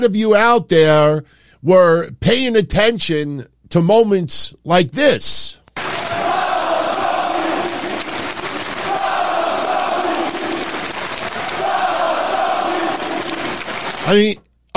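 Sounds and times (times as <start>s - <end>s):
speech: 0.0s - 5.6s, 14.1s - 14.7s
arena crowd singing along to a wrestler's entrance theme: 6.0s - 13.7s.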